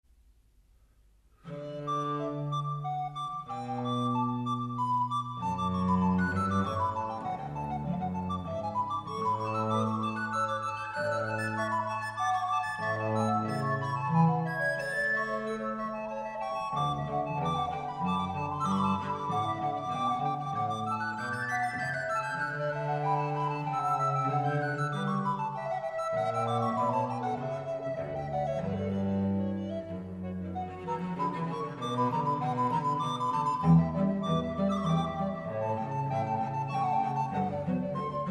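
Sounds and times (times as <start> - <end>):
organ trio sonata: 1.5 - 38.2.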